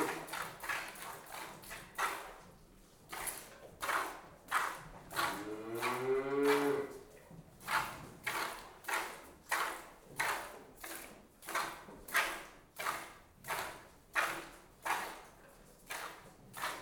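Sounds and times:
milk squirting into a pail: 0.0 - 2.5, 3.1 - 16.8
cow mooing: 5.3 - 7.0.

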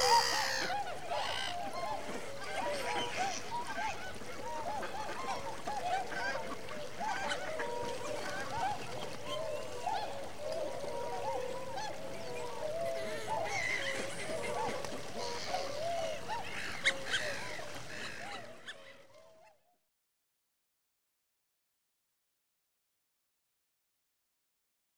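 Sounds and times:
winter migrant waterfowl flock calling: 0.0 - 19.6.

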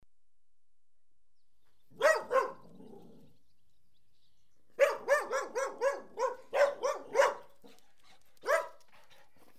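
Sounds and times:
dog barking: 1.9 - 3.2, 4.8 - 7.8, 8.4 - 8.8.

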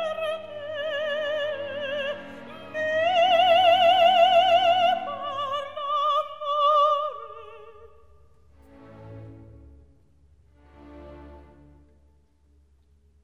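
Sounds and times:
recitative and aria singing: 0.0 - 9.6.

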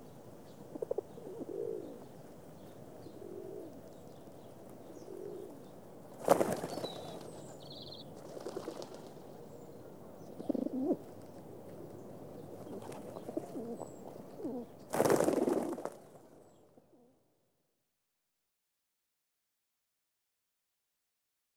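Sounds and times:
pigeons feeding in a city: 0.7 - 16.5.

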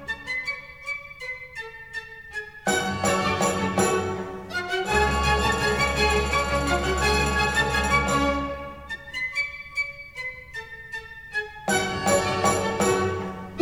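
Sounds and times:
minuet in A major: 2.6 - 9.7, 11.7 - 13.5.

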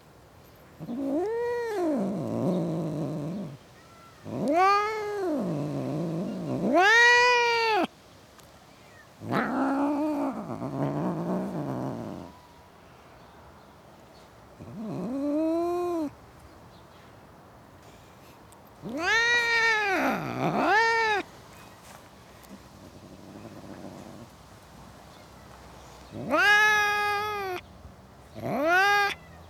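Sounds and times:
cat caterwauling: 0.8 - 7.9, 9.2 - 12.4, 14.6 - 16.1, 18.8 - 21.3, 26.1 - 27.6, 28.4 - 29.3.

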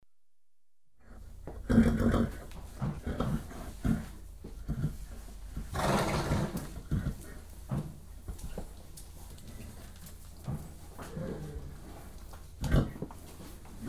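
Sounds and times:
horse snorting: 1.6 - 7.9, 9.5 - 13.1.

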